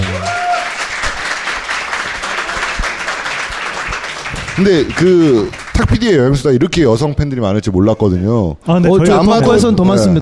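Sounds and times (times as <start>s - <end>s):
audience applause: 0.0s - 6.2s
speech: 4.6s - 10.2s.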